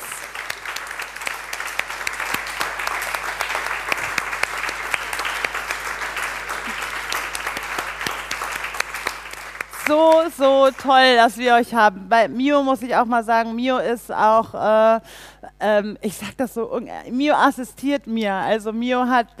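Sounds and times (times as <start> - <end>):
crowd clapping: 0.0 - 10.9
speech: 9.9 - 19.3.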